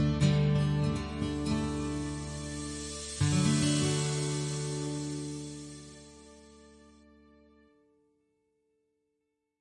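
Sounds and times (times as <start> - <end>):
energetic indie folk music: 0.0 - 7.2.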